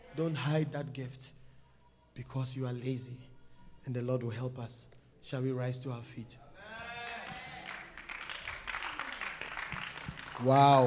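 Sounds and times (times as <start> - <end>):
speech: 0.2 - 1.4, 2.2 - 6.4, 10.4 - 10.8
weak audience clapping: 6.9 - 10.8.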